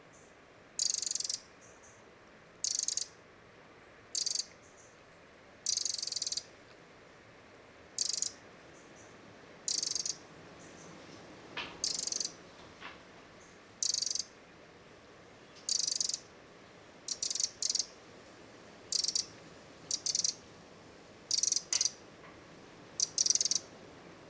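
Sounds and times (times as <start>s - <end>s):
background hiss: 0.0s - 24.2s
Eurasian wren churring: 2.6s - 3.1s, 4.2s - 4.5s, 8.0s - 8.4s, 9.7s - 10.2s, 11.8s - 12.4s, 13.8s - 14.3s, 15.7s - 16.2s, 17.1s - 17.9s, 18.9s - 19.3s, 19.9s - 20.4s, 21.3s - 22.0s, 23.0s - 23.7s.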